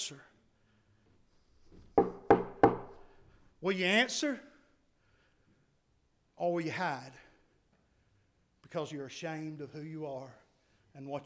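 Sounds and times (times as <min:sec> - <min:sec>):
speech: 0:00.0 - 0:00.3, 0:03.6 - 0:04.5, 0:06.4 - 0:07.2, 0:08.7 - 0:10.4, 0:11.0 - 0:11.2
knocking on a door: 0:01.8 - 0:03.0.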